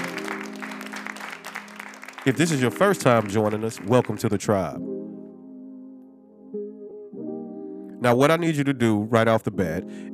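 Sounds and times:
applause: 0.0 - 4.5
speech: 2.2 - 5.0, 8.0 - 10.1.

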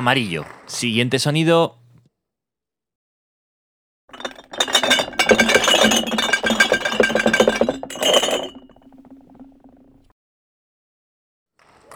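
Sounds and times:
speech: 0.0 - 1.8
glass bottles clinking and rattling: 4.1 - 10.0.

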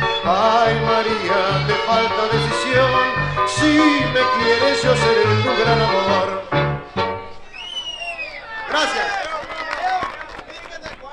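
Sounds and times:
speech: 0.2 - 6.5
audience applause after a song: 7.9 - 11.1.

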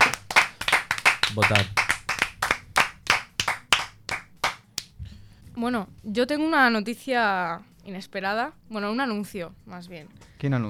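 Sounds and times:
brief applause from a few hands: 0.0 - 5.0
speech: 1.3 - 1.8, 5.6 - 10.6.

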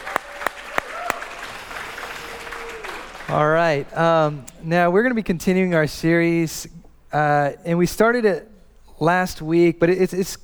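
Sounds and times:
sharp loud claps: 0.0 - 3.4
church congregation applauding mothers on Mother's Day: 0.0 - 3.9
speech: 3.3 - 10.4.

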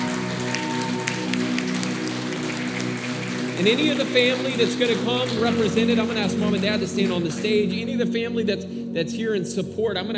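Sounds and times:
audience applauding: 0.0 - 7.7
speech: 3.6 - 10.1.

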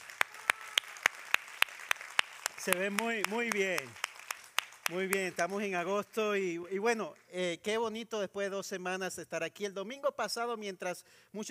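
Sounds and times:
audience applause: 0.0 - 6.0
speech: 2.6 - 4.0, 4.9 - 11.5.

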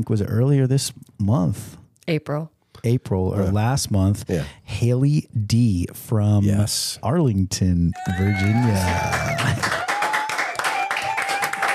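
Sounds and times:
speech: 0.0 - 9.8
studio audience applause: 8.0 - 11.7.

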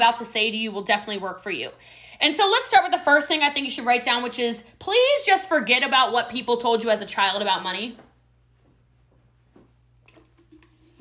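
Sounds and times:
speech: 0.0 - 8.1
person sipping a drink: 10.0 - 10.9.

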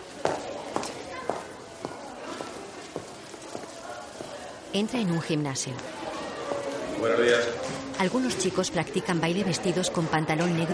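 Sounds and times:
faint voices murmuring: 0.0 - 10.7
footsteps through school corridors on a hard floor: 0.2 - 4.4
speech: 4.7 - 6.0, 7.0 - 10.7.

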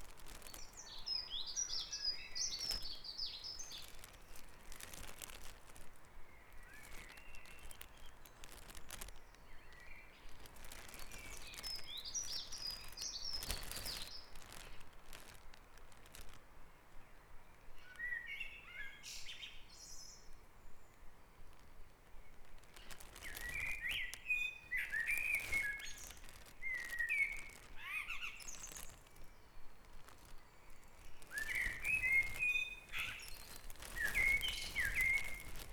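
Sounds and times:
dawn chorus birdsong: 0.3 - 4.3, 6.4 - 14.6, 22.8 - 35.7.

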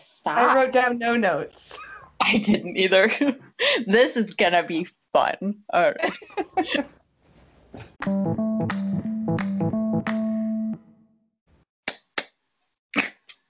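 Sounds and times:
speech: 0.2 - 7.0
hand claps for the intro: 8.0 - 10.8.

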